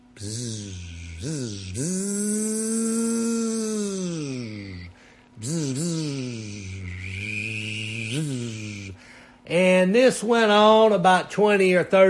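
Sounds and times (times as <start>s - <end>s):
voice imitating a weed eater: 0.0s - 9.0s
speech: 0.2s - 2.5s, 9.9s - 12.0s.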